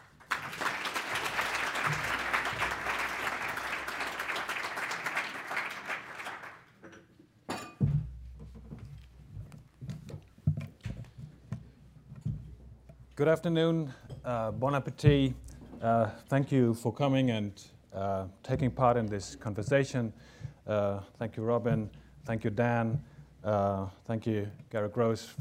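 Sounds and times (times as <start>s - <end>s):
audience applause at a City Club of Cleveland forum welcoming a speaker: 0.0s - 6.7s
speech: 13.2s - 25.3s.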